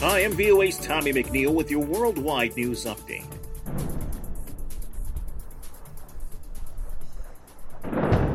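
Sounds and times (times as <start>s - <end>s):
speech: 0.1s - 3.8s
explosions in Beirut: 3.6s - 6.2s, 6.8s - 8.3s.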